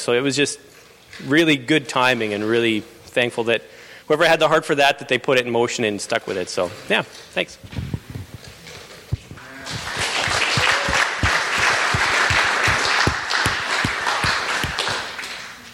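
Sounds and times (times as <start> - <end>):
speech: 0.0 - 7.9
person clapping with a microphone in hand: 9.7 - 15.6.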